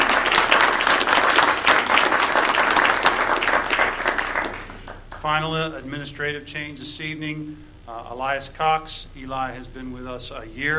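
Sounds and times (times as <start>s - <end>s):
applause: 0.0s - 5.2s
speech: 5.2s - 10.7s.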